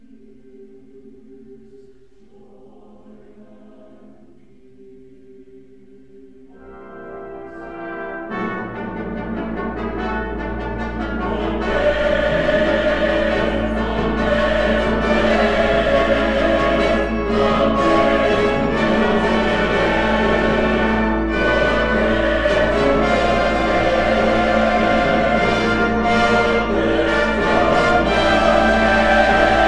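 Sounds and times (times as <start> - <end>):
fanfare: 6.7 - 29.6.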